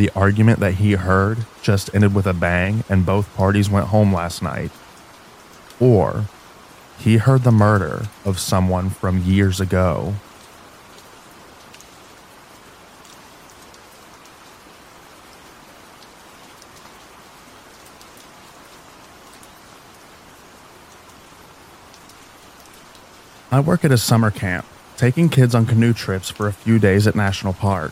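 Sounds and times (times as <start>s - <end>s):
speech: 0.0s - 4.8s, 5.8s - 6.4s, 7.0s - 10.2s, 23.5s - 27.9s
rain falling: 0.0s - 27.9s.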